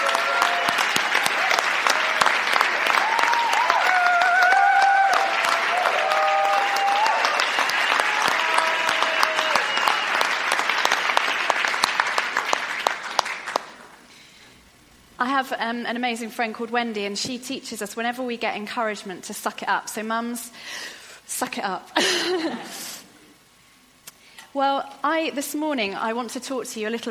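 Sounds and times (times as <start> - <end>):
audience clapping: 0.0 - 14.1
speech: 15.4 - 22.9, 24.5 - 27.0.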